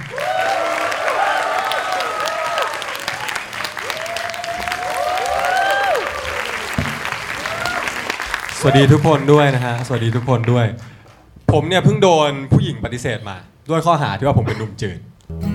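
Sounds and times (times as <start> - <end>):
people whooping and cheering: 0.0 - 9.5
crowd clapping: 0.0 - 11.3
speech: 8.6 - 10.9, 11.5 - 15.4.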